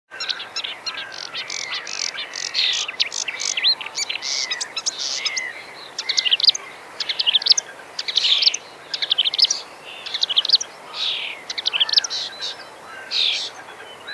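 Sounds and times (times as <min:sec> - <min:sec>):
Marsh warbler song: 0:00.1 - 0:14.1.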